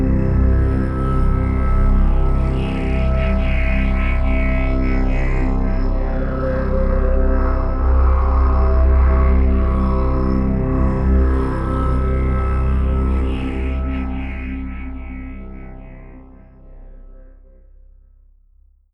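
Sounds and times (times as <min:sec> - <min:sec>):
ethnic drone: 0:00.0 - 0:18.0.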